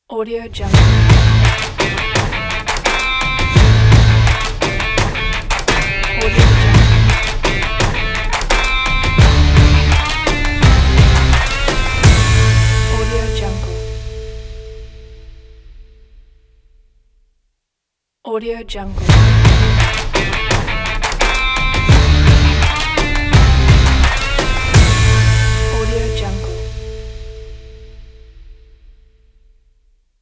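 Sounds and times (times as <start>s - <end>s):
powerful rock ident: 0.6s - 16.4s, 18.9s - 29.0s.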